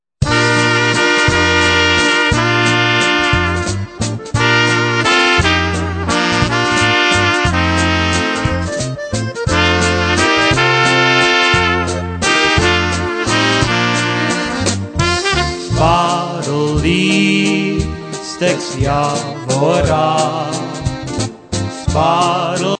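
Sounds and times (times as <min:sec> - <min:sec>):
waltz music: 0:00.2 - 0:22.5.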